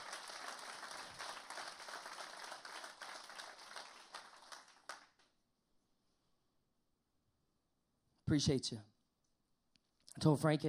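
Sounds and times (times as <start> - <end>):
audience applause: 0.0 - 5.2
speech: 8.3 - 8.9, 10.2 - 10.6.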